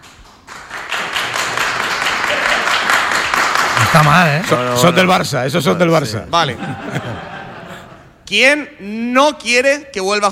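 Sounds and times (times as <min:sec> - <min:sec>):
audience applause: 0:00.0 - 0:05.3
speech: 0:03.9 - 0:07.3, 0:08.3 - 0:10.3
laughter: 0:06.0 - 0:08.2.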